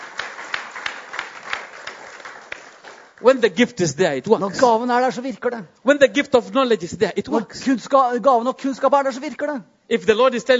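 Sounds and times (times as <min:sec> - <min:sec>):
audience hand clapping: 0:00.0 - 0:03.6
speech: 0:03.2 - 0:10.5.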